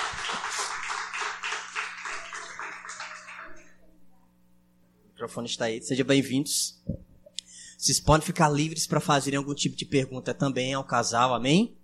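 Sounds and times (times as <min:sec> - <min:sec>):
crowd applauding: 0:00.0 - 0:03.8
speech: 0:05.2 - 0:07.0, 0:07.8 - 0:11.8.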